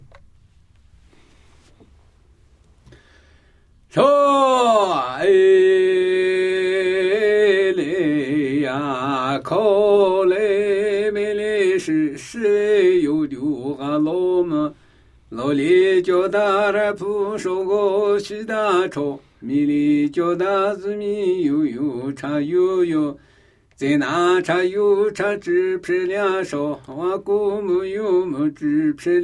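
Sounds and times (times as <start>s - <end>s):
Namuyi Tibetan ritual chanting: 3.9s - 23.2s, 23.8s - 29.2s.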